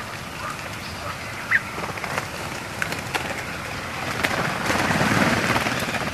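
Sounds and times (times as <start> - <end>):
redwing flight calls while migrating overhead at night: 0.0 - 6.1
steady hiss of noise: 0.0 - 6.1.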